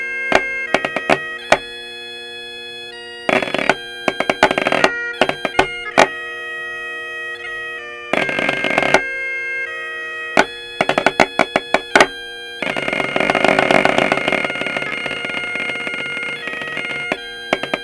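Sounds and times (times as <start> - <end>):
snare drum drone: 0.3 - 1.8, 3.3 - 6.1, 8.2 - 9.1, 10.4 - 17.8.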